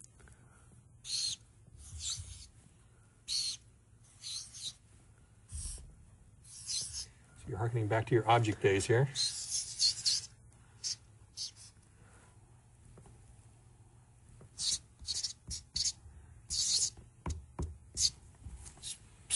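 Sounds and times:
marker drawing a diagram on a whiteboard: 1.0s - 2.6s, 3.3s - 4.9s, 5.5s - 7.2s, 9.2s - 11.8s, 14.4s - 19.0s
speech: 7.6s - 9.4s.

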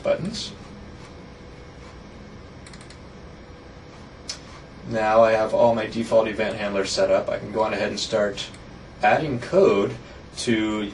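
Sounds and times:
speech: 0.0s - 0.6s, 4.9s - 10.9s
computer mouse double-clicking in Visual Studio designer: 2.6s - 3.0s.

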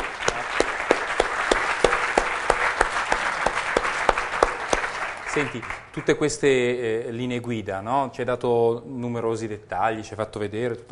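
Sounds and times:
audience applause: 0.0s - 6.1s
speech: 5.4s - 10.9s.

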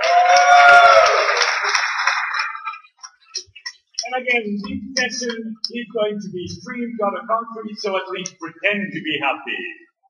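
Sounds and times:
high whoops: 0.0s - 1.8s
audience applause: 0.0s - 3.0s
speech: 4.3s - 9.8s.

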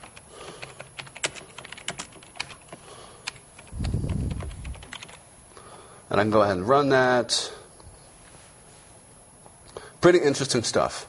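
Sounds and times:
typing a SQL select count query on a computer keyboard: 0.0s - 5.2s
speech: 6.2s - 7.6s, 10.0s - 11.0s.

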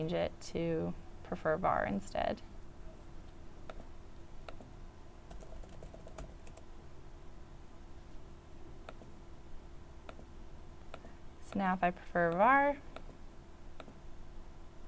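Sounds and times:
speech: 0.0s - 2.5s, 11.6s - 12.9s
typing on a computer keyboard: 5.3s - 6.7s, 10.1s - 10.3s, 12.3s - 13.2s, 13.8s - 14.0s.

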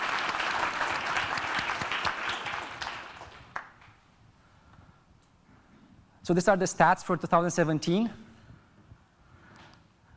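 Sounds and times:
audience applause: 0.0s - 3.9s
sharp clap: 0.0s - 4.0s
speech: 6.3s - 8.2s.

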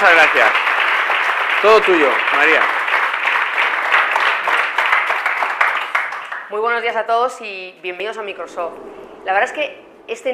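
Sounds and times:
crowd applause: 0.0s - 6.5s
speech: 1.6s - 2.8s, 6.5s - 10.3s.

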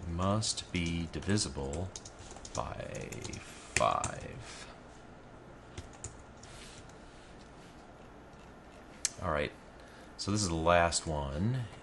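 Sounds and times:
speech: 0.2s - 4.7s, 9.2s - 9.6s, 10.2s - 11.8s
computer keyboard typing: 0.8s - 4.4s, 5.7s - 6.6s.

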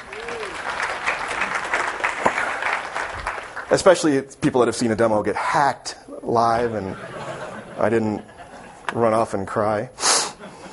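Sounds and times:
audience applause: 0.0s - 4.1s
speech: 3.7s - 7.1s, 7.8s - 8.3s, 8.9s - 10.0s
laughter: 6.6s - 8.9s, 10.4s - 10.7s.

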